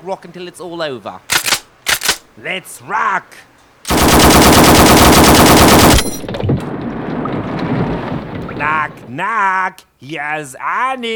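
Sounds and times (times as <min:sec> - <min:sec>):
speech: 0:00.0 - 0:01.4, 0:02.4 - 0:03.5, 0:08.6 - 0:11.1
machine gun fire sound effect: 0:01.3 - 0:02.2, 0:03.9 - 0:06.3.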